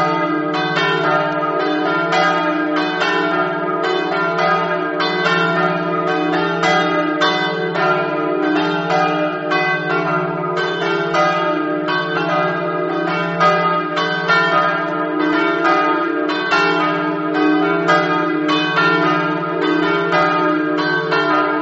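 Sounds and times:
bells ringing in Flagogna: 0.0s - 21.6s.

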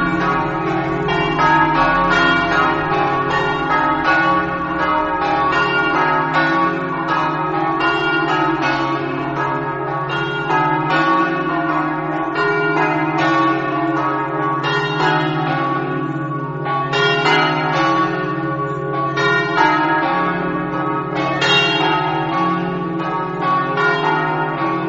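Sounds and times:
bells ringing in Osoppo: 0.0s - 24.8s.

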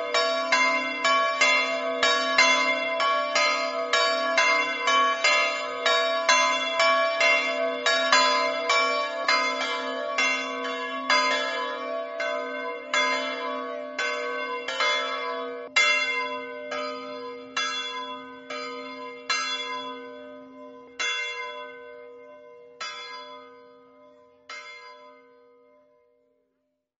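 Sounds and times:
bells ringing: 0.0s - 25.5s.

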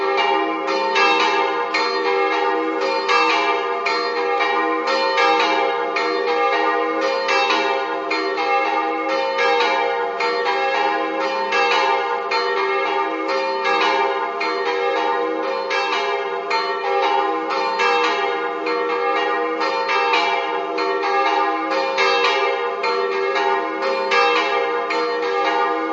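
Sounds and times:
church bells: 0.0s - 25.9s.

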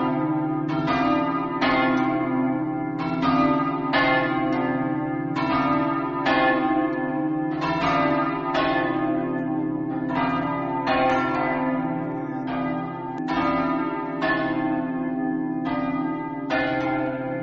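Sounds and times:
bells ringing in Montenars: 0.0s - 17.4s.

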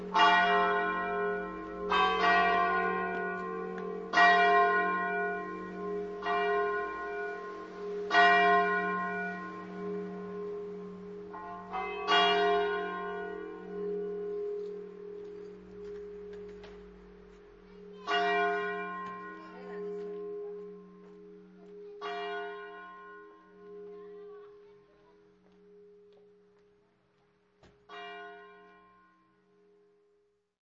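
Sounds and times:
bells ringing: 0.0s - 26.4s, 27.9s - 29.4s.

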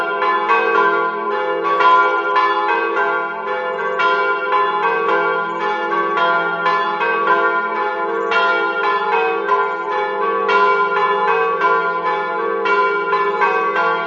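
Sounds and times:
church bells ringing: 0.0s - 14.0s.

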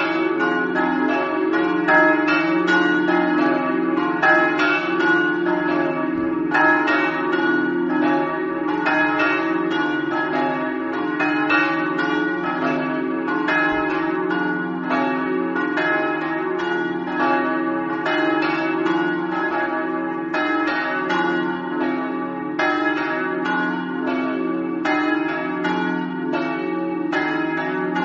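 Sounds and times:
church bells ringing in Zugliano: 0.0s - 28.0s.

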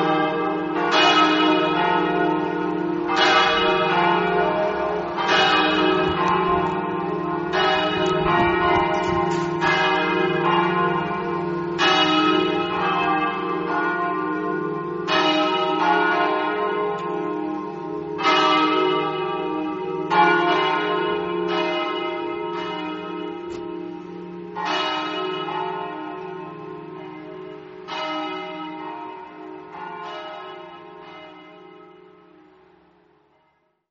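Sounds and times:
bells of Madonna di Rosa ringing: 0.0s - 33.5s.

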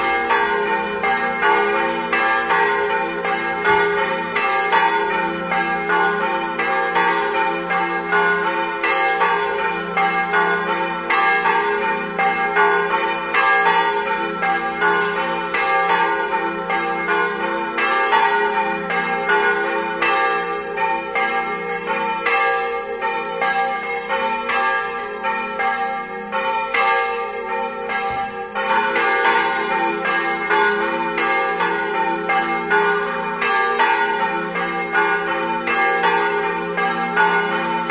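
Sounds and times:
bells ringing: 0.0s - 37.8s.

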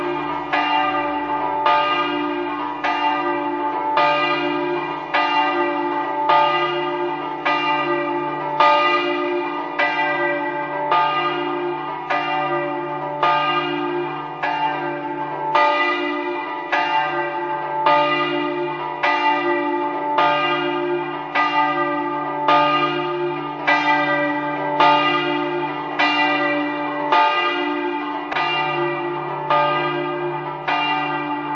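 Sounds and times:
church bells ringing: 0.0s - 31.5s.

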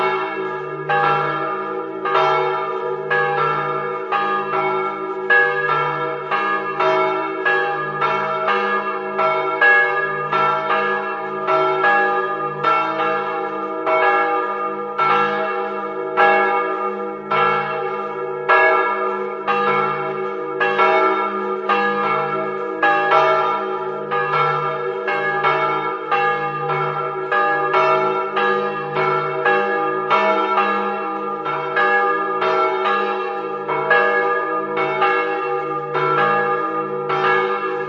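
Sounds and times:
church bells in Polcenigo: 0.0s - 37.8s.

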